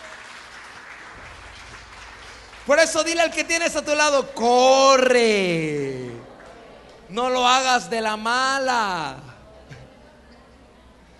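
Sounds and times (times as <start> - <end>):
church congregation applauding during a Spanish-language service: 0.0 - 9.0
speech: 2.7 - 6.1, 7.1 - 9.3.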